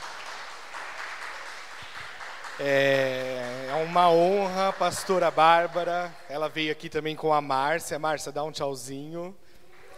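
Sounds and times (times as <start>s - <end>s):
crowd applause: 0.0s - 6.6s, 9.7s - 9.9s
speech: 2.6s - 9.4s.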